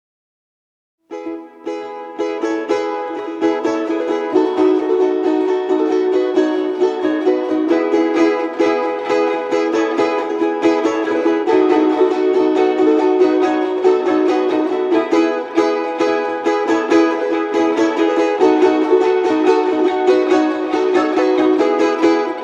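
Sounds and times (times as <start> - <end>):
tune played on balalaikas: 1.1 - 22.4.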